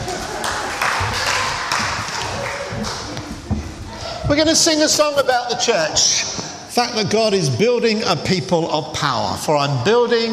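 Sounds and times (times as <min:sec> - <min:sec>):
round of applause: 0:00.0 - 0:03.4
laughter: 0:00.0 - 0:06.3
speech: 0:04.3 - 0:10.3.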